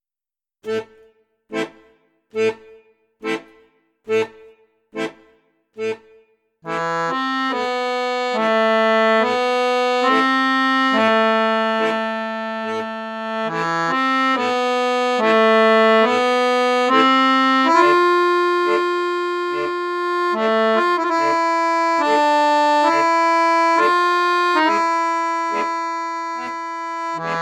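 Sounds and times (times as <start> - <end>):
accordion in bassoon register: 0.7 - 27.3.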